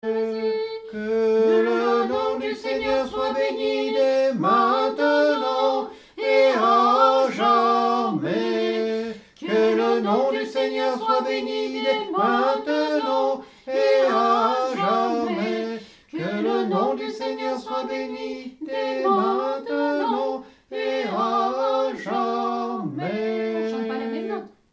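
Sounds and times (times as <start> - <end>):
tenor singing a sacred piece: 0.0 - 24.6.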